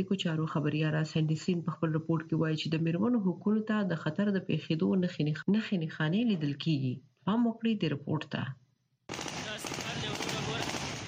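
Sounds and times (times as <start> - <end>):
speech: 0.0 - 8.6
celebratory gunfire into the air at Kabul airport: 9.1 - 11.0.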